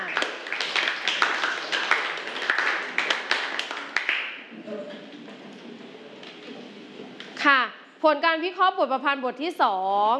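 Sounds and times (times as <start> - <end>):
group clapping hands: 0.0 - 4.6
speech: 7.4 - 10.1.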